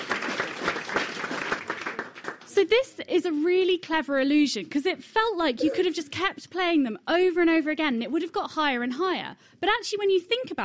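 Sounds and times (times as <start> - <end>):
group applause: 0.0 - 2.5
speech: 2.6 - 10.6.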